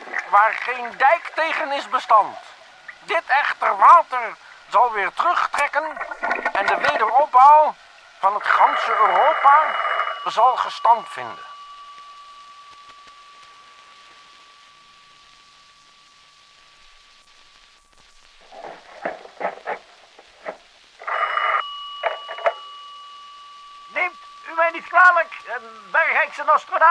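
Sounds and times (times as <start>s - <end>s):
speech: 0.3s - 11.5s, 25.6s - 26.8s
incoming telephone call ringing: 8.2s - 15.4s, 21.0s - 26.8s.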